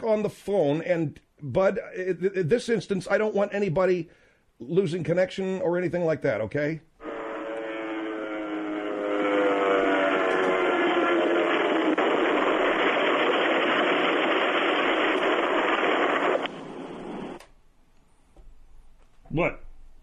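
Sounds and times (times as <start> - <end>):
speech: 0.0 - 6.9
plane crashing heard over phone: 7.0 - 17.4.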